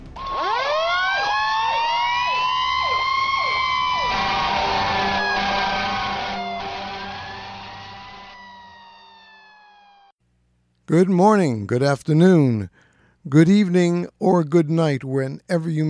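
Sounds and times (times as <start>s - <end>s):
fire engine siren wailing: 0.2s - 10.2s
speech: 10.9s - 15.8s.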